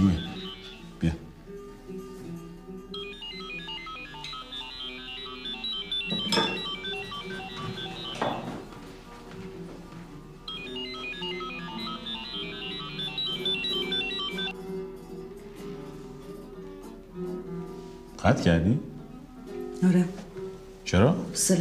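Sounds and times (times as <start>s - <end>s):
mobile phone ringtone with bright repeating electronic notes: 0.0s - 1.2s, 2.9s - 8.8s, 10.5s - 14.6s
speech: 1.0s - 1.2s, 18.4s - 18.9s, 19.8s - 20.1s, 20.9s - 21.5s.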